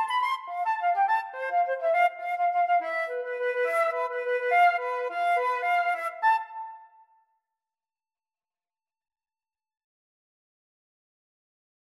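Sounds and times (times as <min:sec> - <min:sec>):
flute duet: 0:00.0 - 0:07.2.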